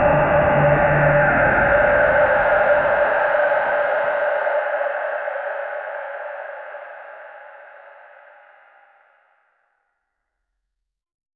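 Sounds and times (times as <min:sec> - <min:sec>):
ambient cyberpunk music: 0:00.0 - 0:08.1.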